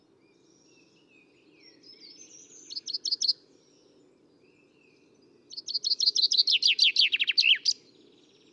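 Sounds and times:
common chaffinch Fringilla coelebs song: 0.6 - 3.4, 5.3 - 8.5.

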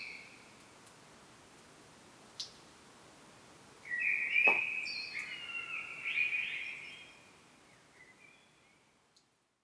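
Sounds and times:
common blackbird singing: 3.9 - 7.0.

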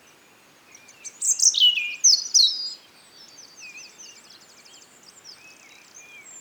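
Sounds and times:
European robin song: 0.7 - 6.4.

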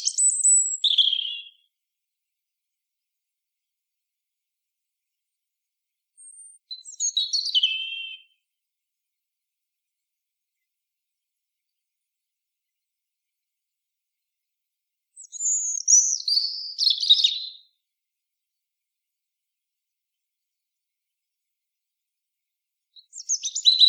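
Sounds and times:
European robin singing: 0.0 - 1.7, 6.2 - 8.4, 15.2 - 17.8, 23.0 - 23.8.

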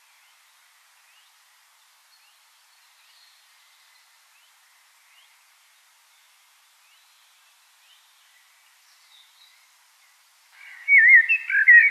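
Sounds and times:
common blackbird song: 0.0 - 11.8.

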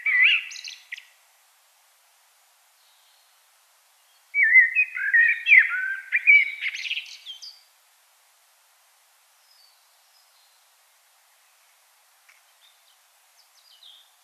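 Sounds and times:
common blackbird song: 0.0 - 1.2, 2.8 - 3.4, 4.0 - 7.7, 9.4 - 10.8, 12.3 - 14.2.

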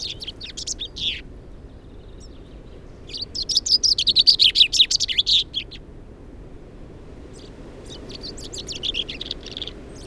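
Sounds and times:
common chaffinch Fringilla coelebs chirping: 0.0 - 1.2, 3.1 - 5.8, 7.4 - 10.0.

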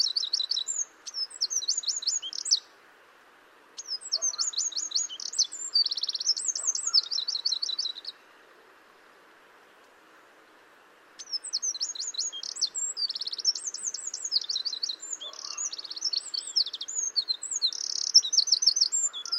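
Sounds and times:
Eurasian wren song: 0.0 - 2.8, 3.8 - 8.3, 11.2 - 19.3.

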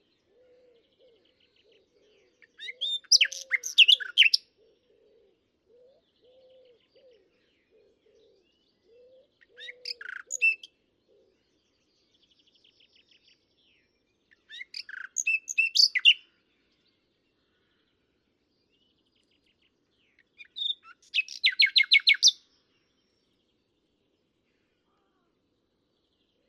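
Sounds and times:
common nightingale singing: 0.0 - 4.8, 5.7 - 11.4, 12.2 - 16.3, 20.0 - 22.5.

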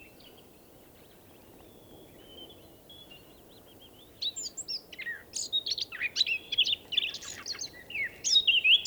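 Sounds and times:
Eurasian blackcap singing a fast warble: 4.3 - 8.8.

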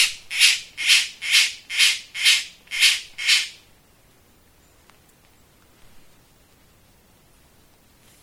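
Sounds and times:
bird squawking: 0.0 - 3.6.

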